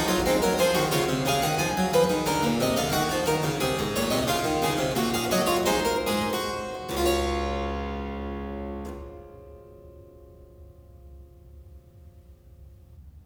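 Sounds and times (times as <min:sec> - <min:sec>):
three-part keyboard invention in D major: 0:00.0 - 0:09.5.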